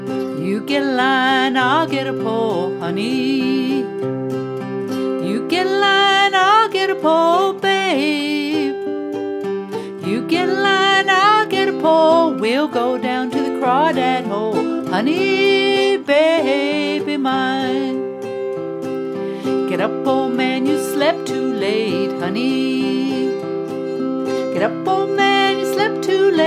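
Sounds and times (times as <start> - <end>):
woman singing a song: 0.2 - 4.1, 4.9 - 18.5, 19.3 - 26.4.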